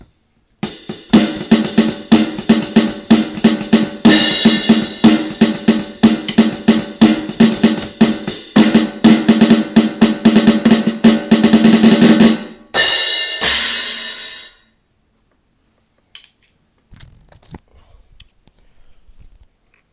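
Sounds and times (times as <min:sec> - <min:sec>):
drums: 0:00.0 - 0:14.6.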